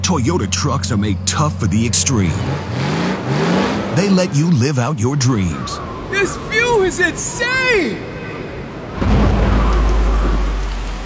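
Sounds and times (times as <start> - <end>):
speech: 0.1 - 3.4, 4.0 - 8.1
rain: 8.7 - 11.0.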